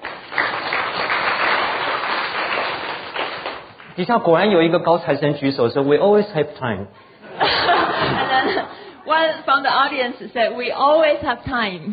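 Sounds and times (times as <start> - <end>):
applause from a lecture audience: 0.0 - 3.9
speech: 4.0 - 7.0, 9.1 - 11.9
laughter: 7.2 - 9.0.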